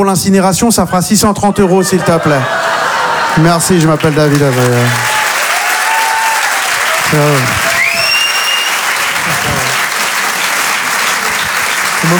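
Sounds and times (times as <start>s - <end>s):
speech: 0.0s - 2.8s, 3.4s - 5.2s, 7.1s - 7.7s
laughter: 1.4s - 5.2s, 8.8s - 12.1s
audience applause: 1.6s - 12.1s
audience whoop or whistle: 5.1s - 6.7s, 7.4s - 8.9s.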